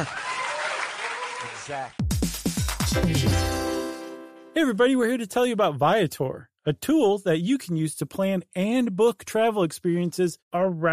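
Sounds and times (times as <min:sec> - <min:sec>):
speech: 0:00.0 - 0:00.2, 0:01.6 - 0:02.0, 0:02.9 - 0:03.6, 0:04.6 - 0:10.9
round of applause from a group: 0:00.0 - 0:02.0.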